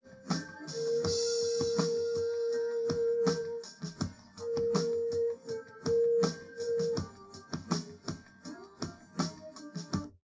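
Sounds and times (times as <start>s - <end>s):
drums: 0.0s - 10.2s.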